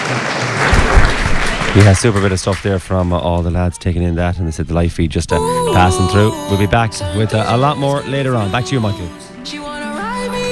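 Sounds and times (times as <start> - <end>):
audience applause: 0.0 - 3.6
speech: 1.8 - 9.6.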